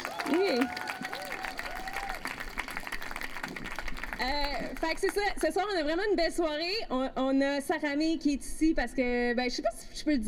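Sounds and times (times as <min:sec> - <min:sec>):
audience applause: 0:00.0 - 0:05.2
speech: 0:00.3 - 0:00.8, 0:04.2 - 0:10.2.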